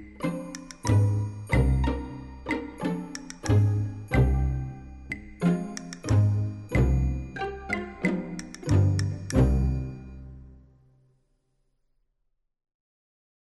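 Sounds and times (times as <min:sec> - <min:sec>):
habanera music: 0:00.0 - 0:10.6.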